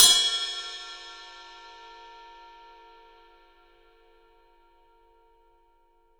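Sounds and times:
ride cymbal: 0.0s - 2.2s.

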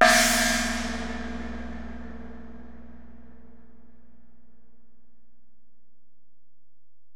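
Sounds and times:
ride cymbal on Alesis DM-PRO: 0.0s - 2.7s.

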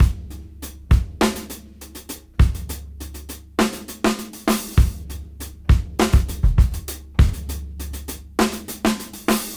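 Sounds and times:
half funk music at 101 BPM: 0.0s - 9.5s.

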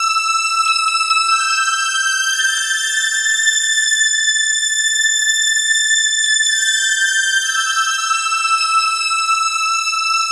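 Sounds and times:
string instrument: 0.0s - 10.3s.

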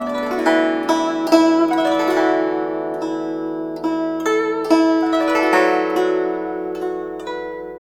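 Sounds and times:
guzheng: 0.0s - 7.8s.

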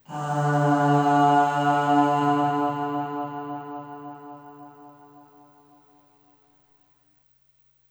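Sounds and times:
short aah vocal on D2 with long reverb: 0.0s - 5.6s.

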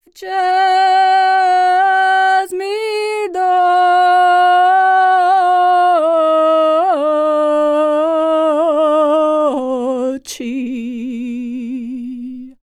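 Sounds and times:
Serbian singing voices: 0.0s - 12.6s.

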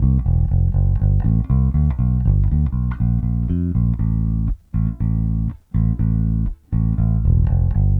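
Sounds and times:
70s analog funk bass line: 0.0s - 7.9s.

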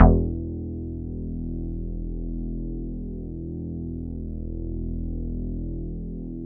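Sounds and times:
synthesizers: 0.0s - 0.7s
bass: 0.0s - 6.4s.

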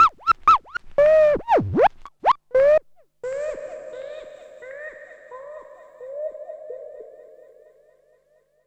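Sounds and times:
gibbon scratching: 0.0s - 2.8s.

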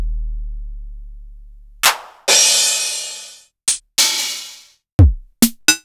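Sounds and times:
Korg Electribe ER-1 drum machine kit: 1.9s - 5.8s.

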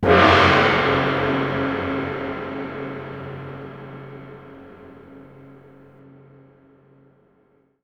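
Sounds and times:
long gong: 0.0s - 5.6s.

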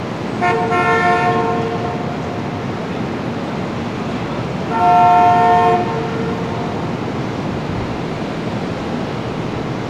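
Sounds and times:
New York City ambience: 0.0s - 9.8s.

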